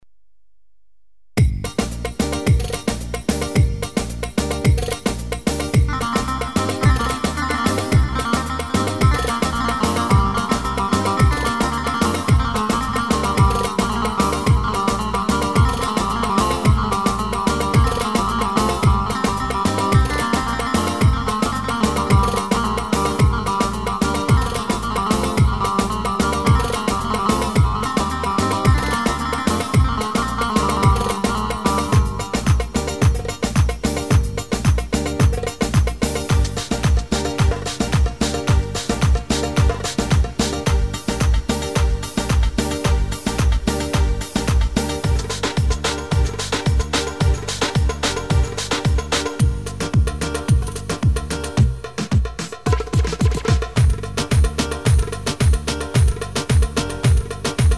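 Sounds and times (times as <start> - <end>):
electro music with 2-4 rhythm on SX3000: 1.4 - 57.7.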